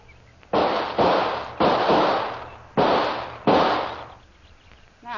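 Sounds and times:
gunshot: 0:00.5 - 0:04.2.

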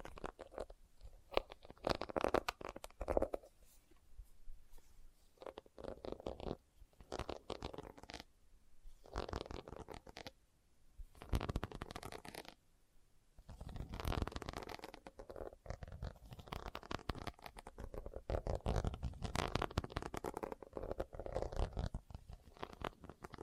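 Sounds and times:
leather tapped and scratched: 0:00.0 - 0:00.7, 0:01.3 - 0:03.5, 0:05.4 - 0:08.2, 0:09.0 - 0:10.3, 0:11.2 - 0:12.5, 0:13.6 - 0:23.4.

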